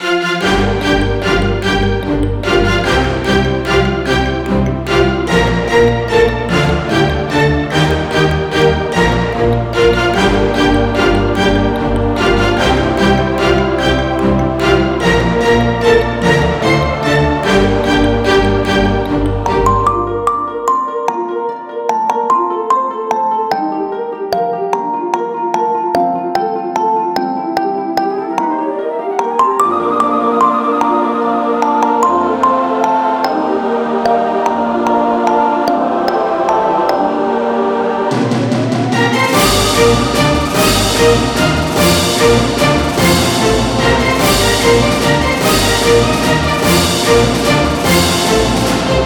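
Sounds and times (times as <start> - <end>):
Chabad orchestral music: 0.0 - 27.0, 27.8 - 49.0.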